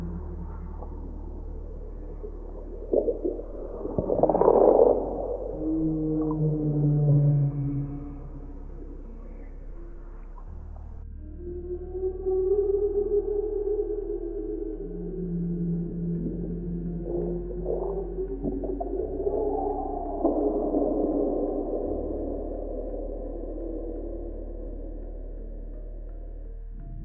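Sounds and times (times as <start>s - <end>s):
whale calls: 0.0s - 25.4s.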